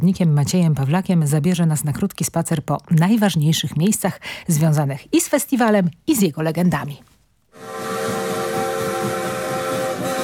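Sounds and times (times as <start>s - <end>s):
speech: 0.0s - 7.7s
train whistle blast at railway station: 7.5s - 10.2s
rumbling rail noise: 7.6s - 10.2s.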